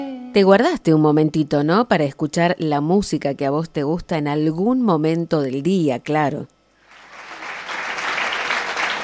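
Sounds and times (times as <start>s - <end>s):
speech: 0.4s - 6.6s
applause effect: 6.8s - 9.0s.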